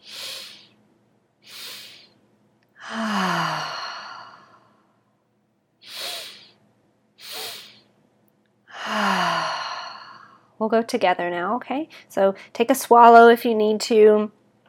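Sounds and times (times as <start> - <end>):
slow breath work breathing demonstration: 0.0 - 0.8, 1.4 - 2.2, 2.8 - 5.1, 5.8 - 6.6, 7.2 - 7.9, 8.7 - 10.5
speech: 10.6 - 14.4.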